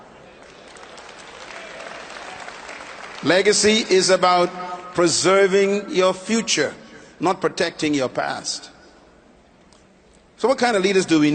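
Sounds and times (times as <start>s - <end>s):
audience applauding: 0.3s - 3.8s
speech: 3.2s - 8.7s, 10.4s - 11.3s.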